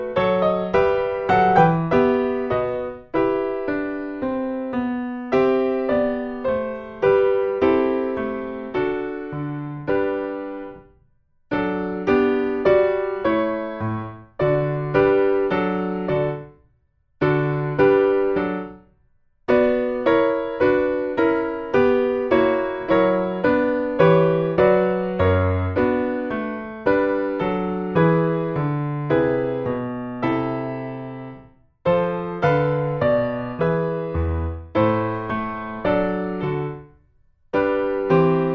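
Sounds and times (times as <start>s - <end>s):
slow adagio piano sonata movement in E minor: 0.0s - 18.9s, 19.5s - 38.5s.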